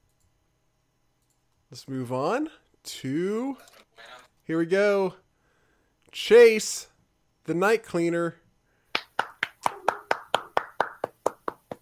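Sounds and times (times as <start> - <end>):
speech: 1.7 - 5.2, 6.1 - 8.4
crisp evenly spaced hand clapping: 8.9 - 11.8.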